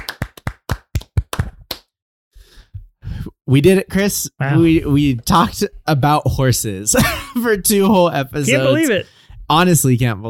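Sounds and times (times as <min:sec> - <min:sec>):
hands clapping in celebration: 0:00.0 - 0:01.9
speech: 0:03.5 - 0:10.2.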